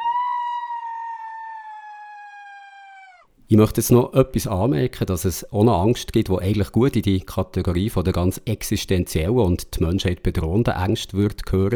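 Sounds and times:
quiet high-pitched scream of fear sound effect: 0:00.0 - 0:03.3
speech: 0:03.5 - 0:11.7.

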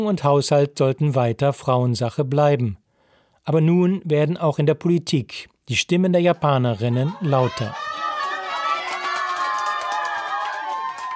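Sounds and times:
speech: 0:00.0 - 0:02.8, 0:03.4 - 0:07.9
crowd cheering election victory: 0:06.8 - 0:11.1.

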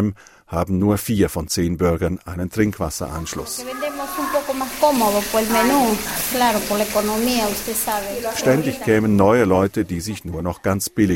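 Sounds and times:
speech: 0:00.0 - 0:11.1
food frying in a pan at a community kitchen around Lima, Peru: 0:03.2 - 0:10.0.

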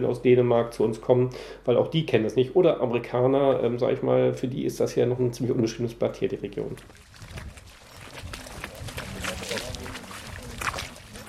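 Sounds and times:
speech: 0:00.0 - 0:07.4
group of people splashing through a tidal creek: 0:06.7 - 0:11.2
indistinct voices murmuring: 0:08.1 - 0:11.2.

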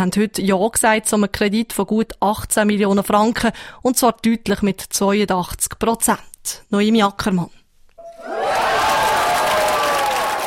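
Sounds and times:
speech: 0:00.0 - 0:07.6
huge applause in the Stadttheater: 0:08.2 - 0:10.4.

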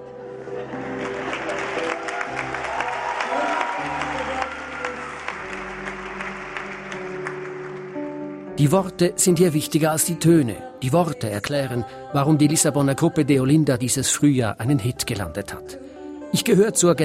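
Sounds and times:
concert audience applauding: 0:00.5 - 0:08.5
speech: 0:08.6 - 0:17.0.

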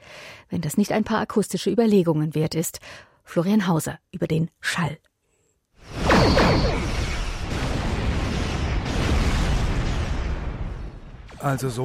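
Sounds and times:
speech: 0:00.5 - 0:05.1, 0:05.8 - 0:06.8, 0:11.4 - 0:11.8
spaceships firing laser cannons in a space battle sound effect: 0:05.9 - 0:10.4.

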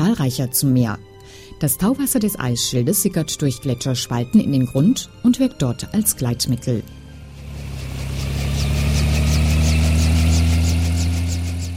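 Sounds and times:
speech: 0:00.1 - 0:07.0
helicopter engine humming: 0:05.7 - 0:11.7
helicopter rotor blades slowly starting up: 0:07.2 - 0:11.7.

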